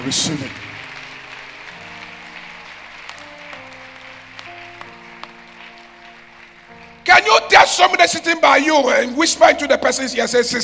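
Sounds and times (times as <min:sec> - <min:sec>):
speech: 0:00.0 - 0:00.7, 0:07.8 - 0:10.6
audience clapping: 0:00.0 - 0:08.3.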